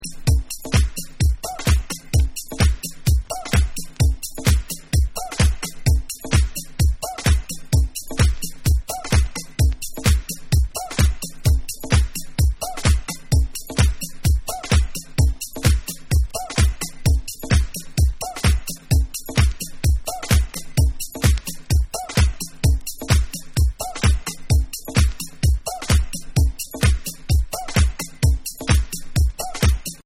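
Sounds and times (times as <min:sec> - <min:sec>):
beats: 0:00.0 - 0:30.0.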